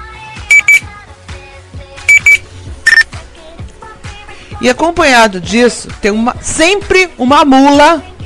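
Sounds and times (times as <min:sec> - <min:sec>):
Nextel phone push-to-talk chirp: 0:00.5 - 0:00.8, 0:02.1 - 0:03.0
speech: 0:04.6 - 0:08.1.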